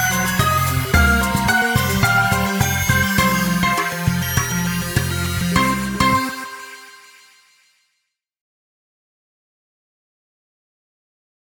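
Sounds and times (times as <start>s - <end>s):
transition practice playalong music: 0.0s - 6.4s.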